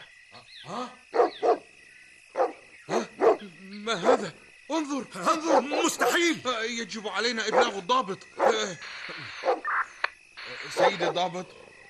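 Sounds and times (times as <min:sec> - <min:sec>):
dog barking: 0:01.1 - 0:01.7, 0:02.3 - 0:04.3, 0:05.5 - 0:06.2, 0:07.5 - 0:07.8, 0:08.4 - 0:08.6, 0:09.4 - 0:09.6
speech: 0:03.9 - 0:09.3, 0:10.6 - 0:11.6.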